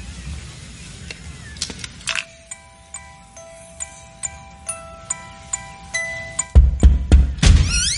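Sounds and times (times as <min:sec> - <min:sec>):
sustained ringing tones: 0:02.2 - 0:07.1
knocking on a door: 0:06.5 - 0:07.7.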